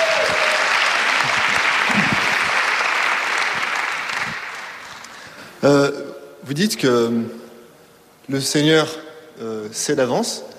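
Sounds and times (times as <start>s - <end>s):
audience applause: 0.0s - 5.3s
speech: 5.6s - 7.4s, 8.3s - 10.5s.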